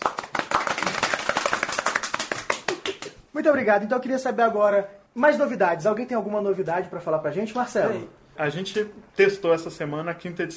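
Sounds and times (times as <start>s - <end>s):
applause: 0.0s - 3.2s
speech: 3.4s - 10.5s.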